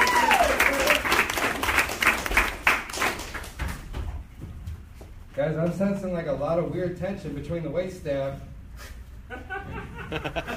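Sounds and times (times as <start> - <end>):
audience applause at a comedy show: 0.0 - 3.6
speech: 5.4 - 8.5, 10.1 - 10.5
laughter: 9.3 - 10.5.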